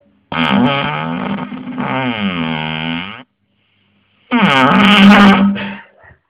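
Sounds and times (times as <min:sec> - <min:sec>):
fart: 0:00.3 - 0:03.3, 0:04.3 - 0:05.9.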